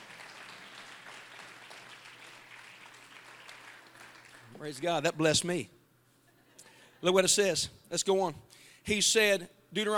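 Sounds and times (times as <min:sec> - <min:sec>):
audience clapping hands: 0:00.0 - 0:04.8
speech: 0:04.6 - 0:05.8, 0:07.0 - 0:09.9.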